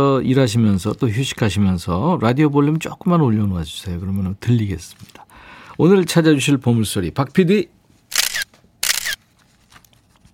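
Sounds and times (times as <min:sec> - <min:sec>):
speech: 0:00.0 - 0:05.2, 0:05.8 - 0:07.8
camera shutter click: 0:08.1 - 0:09.2.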